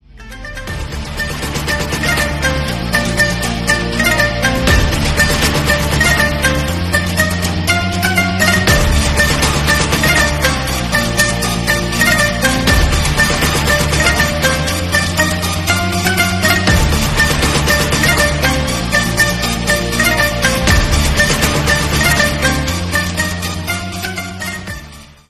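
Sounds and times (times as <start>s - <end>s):
monster background music ringtone: 0.0s - 25.2s.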